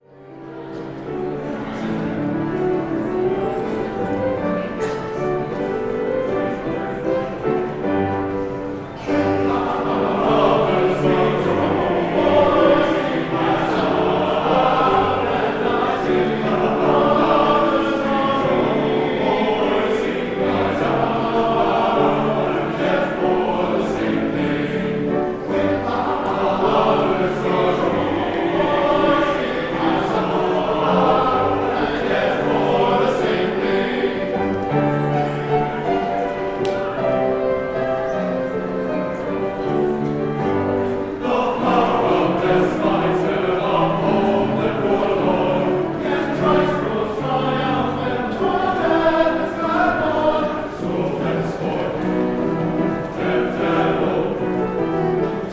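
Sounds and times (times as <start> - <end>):
choir singing: 0.0 - 55.5.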